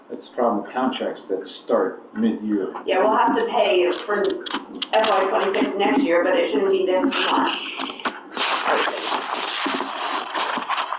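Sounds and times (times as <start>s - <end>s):
speech: 0.1s - 7.9s
papers shuffling: 3.9s - 6.0s, 7.0s - 10.9s.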